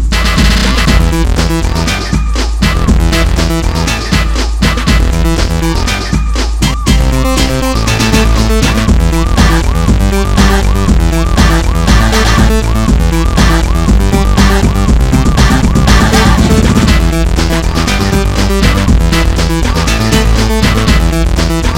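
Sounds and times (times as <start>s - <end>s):
electric bass: 0.2s - 21.7s.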